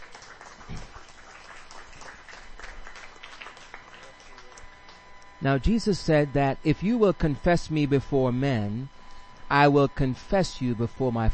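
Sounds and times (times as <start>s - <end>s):
audience clapping: 0.0s - 5.2s
speech: 5.4s - 11.3s.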